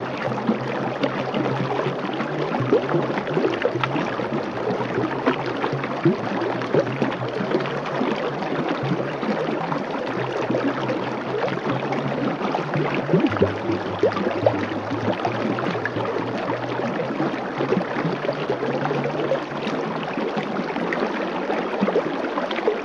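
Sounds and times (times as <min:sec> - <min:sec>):
stream gently babbling: 0:00.0 - 0:22.8.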